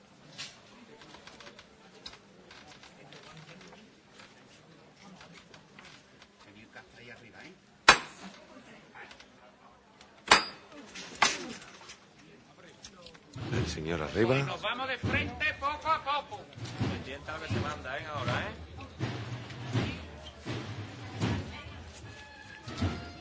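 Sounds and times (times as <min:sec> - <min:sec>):
murmur of voices and bustle: 0:00.0 - 0:23.1
speech: 0:13.8 - 0:18.6
hammer knocks: 0:16.6 - 0:21.6.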